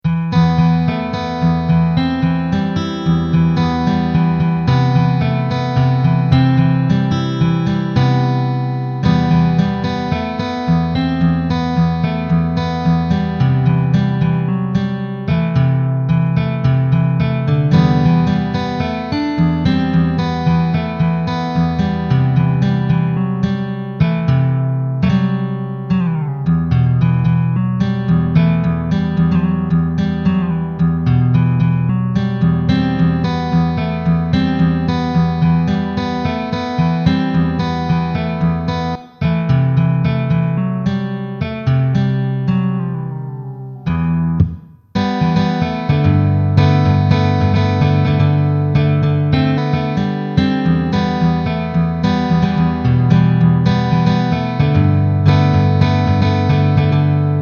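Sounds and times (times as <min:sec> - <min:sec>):
acoustic music: 0:00.0 - 0:57.4.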